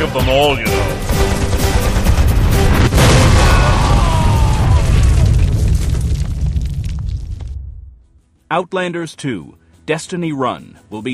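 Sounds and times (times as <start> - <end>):
speech: 0.0 - 1.3, 8.5 - 11.1
grenade explosion: 1.0 - 8.0
faint crackling debris: 1.4 - 8.1.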